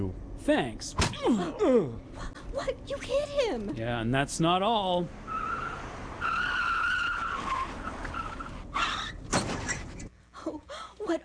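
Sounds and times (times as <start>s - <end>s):
speech: 0.0s - 5.2s, 11.1s - 11.2s
car skidding: 5.1s - 10.1s.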